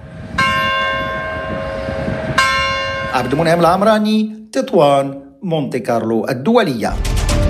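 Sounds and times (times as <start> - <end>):
church bell ringing: 0.4 - 3.9
speech: 3.1 - 7.4.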